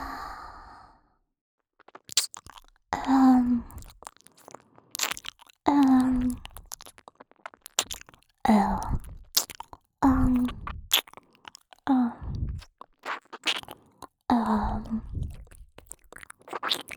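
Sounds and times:
gentle ear licking in the right ear for sleep: 1.8 - 16.9.

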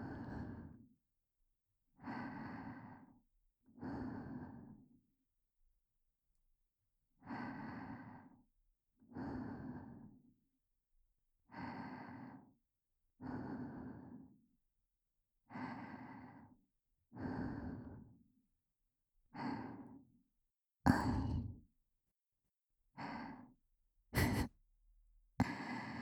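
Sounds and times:
breathing only: 2.0 - 3.1, 3.8 - 4.8, 7.3 - 8.4, 9.2 - 10.1, 11.5 - 12.5, 13.3 - 14.2, 15.5 - 16.6, 17.2 - 18.0, 19.4 - 20.0, 20.9 - 21.7, 23.0 - 23.5, 24.2 - 24.5, 25.4 - 26.0
boosted whispering: 20.9 - 21.6, 24.2 - 24.5.

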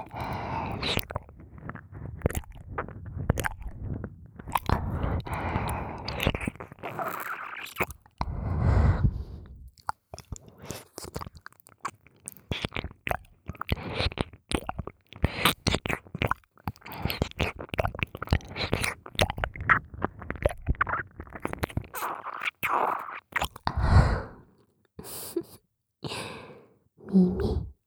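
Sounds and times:
ear licking: 0.0 - 23.7
sticky whispering: 27.1 - 27.8.

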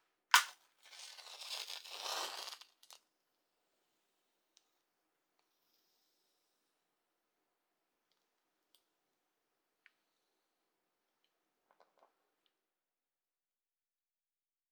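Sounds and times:
match striking to light a fire: 0.3 - 3.0.

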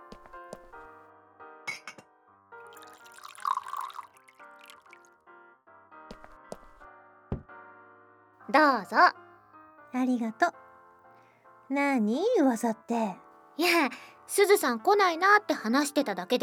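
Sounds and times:
water being poured into a glass: 2.6 - 5.2
glass clinking: 2.7 - 5.0
speech: 8.5 - 9.2, 9.9 - 10.6, 11.7 - 16.4.

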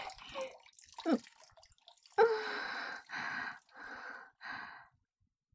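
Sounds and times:
person urinating: 0.0 - 4.2.

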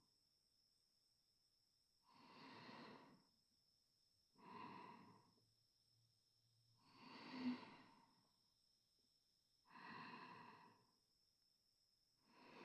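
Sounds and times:
sleeping breath: 2.1 - 3.3, 4.4 - 5.4, 6.9 - 8.3, 9.7 - 11.0, 12.3 - 12.6.

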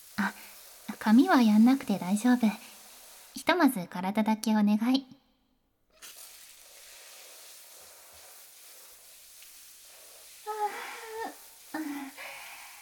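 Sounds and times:
shower water running: 0.0 - 3.7, 6.0 - 12.7
speech: 1.0 - 2.7, 3.4 - 5.2.

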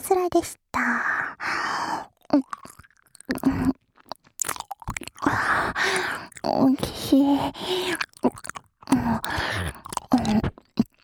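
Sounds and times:
speech: 0.1 - 1.2, 2.3 - 2.6, 6.4 - 8.0
caramel-flavoured candy rolled around in the mouth: 2.3 - 11.0.

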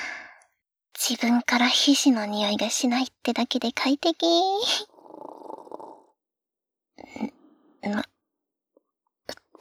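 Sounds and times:
speech: 1.1 - 4.9, 7.1 - 8.1
loud snoring from the neighbouring private room: 4.8 - 6.2.

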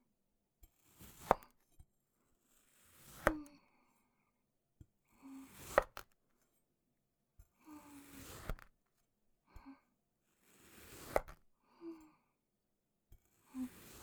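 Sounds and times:
cutting sand clay: 0.8 - 1.5, 2.5 - 3.4, 5.4 - 6.0, 7.9 - 8.7, 10.4 - 11.4, 13.6 - 14.0.

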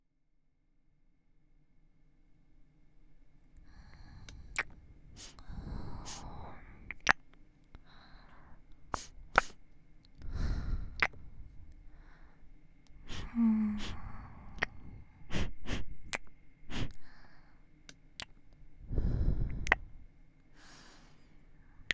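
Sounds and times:
ear licking in both ears: 3.9 - 7.2, 8.8 - 9.6, 10.9 - 11.3, 12.9 - 17.0, 19.5 - 19.9
sniffing near ears: 4.2 - 6.9, 8.9 - 9.6, 13.0 - 16.0, 16.7 - 17.0
kissing sounds: 4.3 - 5.4, 8.9 - 9.6, 14.6 - 14.8, 18.2 - 18.4.

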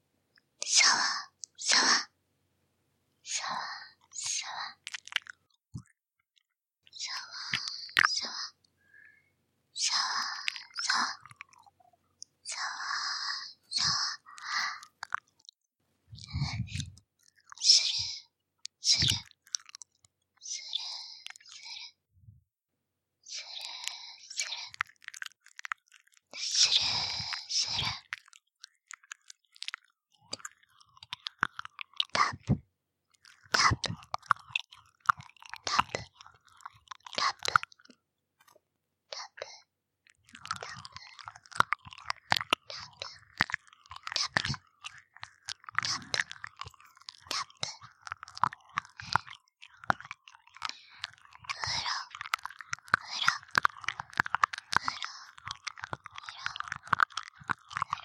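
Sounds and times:
person voicing onomatopoeia: 0.6 - 2.2, 3.2 - 5.2, 6.9 - 8.6, 9.8 - 15.2, 16.1 - 19.7, 20.4 - 22.0, 26.3 - 28.2, 30.2 - 32.6, 33.3 - 37.6, 40.3 - 58.0
ear licking sounds: 7.1 - 8.6, 9.8 - 21.8, 23.4 - 58.0.

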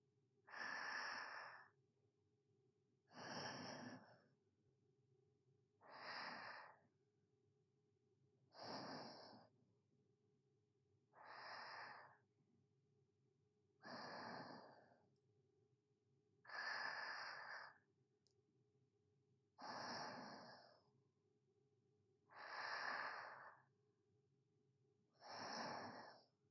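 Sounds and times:
sleeping breathing ASMR: 0.5 - 1.8, 3.1 - 4.3, 5.8 - 6.8, 8.6 - 9.5, 11.2 - 12.2, 13.8 - 15.0, 16.5 - 17.8, 19.6 - 20.9, 22.3 - 23.7, 25.2 - 26.3.

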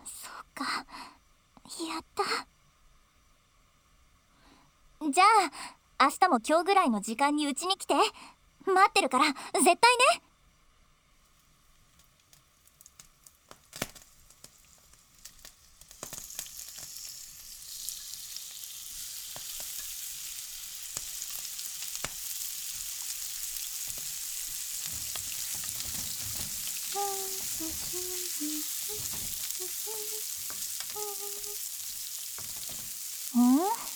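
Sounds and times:
speech: 5.1 - 10.2
chicken breast and nuts stir-frying in a pan: 12.0 - 33.9
utensil clinking and scraping: 23.9 - 33.9
short tonal squeaks: 24.9 - 31.7.

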